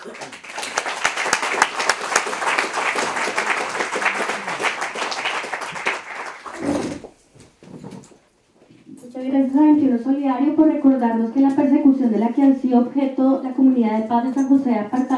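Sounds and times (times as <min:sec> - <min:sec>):
audience applause: 0:00.0 - 0:07.1
speech: 0:09.5 - 0:15.1.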